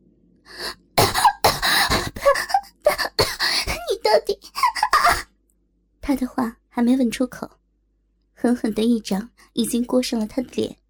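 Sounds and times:
person coughing violently: 0:01.0 - 0:03.9, 0:04.6 - 0:05.2
speech: 0:06.8 - 0:07.6, 0:08.5 - 0:10.8.

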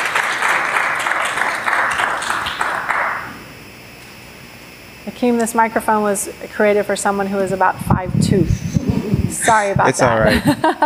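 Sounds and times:
audience round of applause: 0:00.0 - 0:03.4
speech: 0:05.2 - 0:08.7, 0:09.4 - 0:10.8
laughter: 0:08.6 - 0:10.8.

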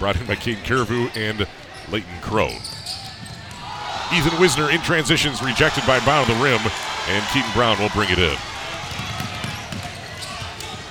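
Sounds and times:
speech: 0:00.0 - 0:02.8, 0:04.1 - 0:08.5
basketball dribbled on a court during a Bad Axe Hatchets game: 0:08.7 - 0:10.8.

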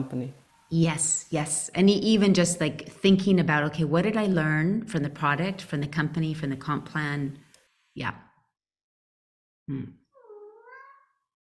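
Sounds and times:
speech: 0:00.0 - 0:07.4, 0:08.0 - 0:08.2, 0:09.7 - 0:10.0
cat meowing angrily: 0:10.2 - 0:11.2.

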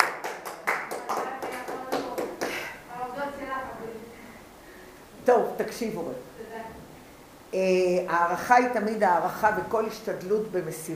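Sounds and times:
group clapping: 0:00.0 - 0:02.8
speech: 0:05.3 - 0:06.3, 0:07.5 - 0:10.9.

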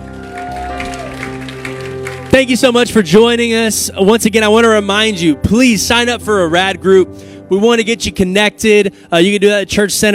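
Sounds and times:
audience cheering: 0:00.0 - 0:02.5
audience applause: 0:00.0 - 0:02.8
speech: 0:02.4 - 0:10.1.

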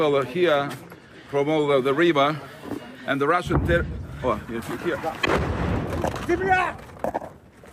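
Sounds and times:
speech: 0:00.0 - 0:07.2
artillery shelling explosions: 0:03.4 - 0:06.5.

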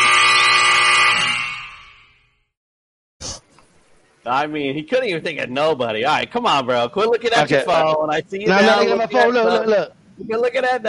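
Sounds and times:
game show wrong-answer X buzzer: 0:00.0 - 0:02.2
speech: 0:04.2 - 0:10.8.

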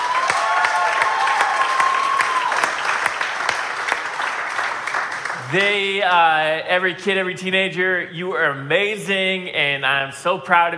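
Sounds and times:
audience applause: 0:00.0 - 0:06.0
speech: 0:05.5 - 0:10.7.

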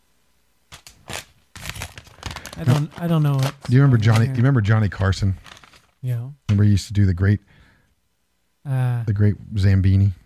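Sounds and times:
envelope being handled and opened with paper crinkling and tearing: 0:00.7 - 0:06.0
speech: 0:02.6 - 0:07.6, 0:08.6 - 0:10.2.

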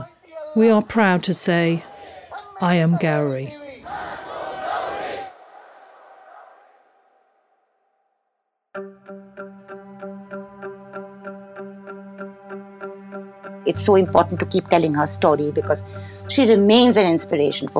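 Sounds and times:
speech: 0:00.6 - 0:01.9, 0:02.6 - 0:03.6, 0:13.7 - 0:17.7
protest crowd chanting: 0:00.6 - 0:07.4.

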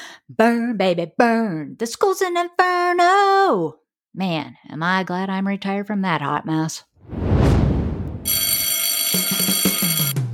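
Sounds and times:
speech: 0:00.3 - 0:07.2
school dismissal bell ringing: 0:08.3 - 0:10.2.

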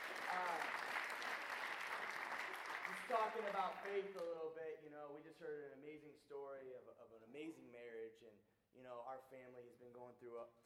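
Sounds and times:
faint voice or cheer: 0:00.0 - 0:03.9
audience applause: 0:00.0 - 0:04.3
speech: 0:03.1 - 0:10.6.

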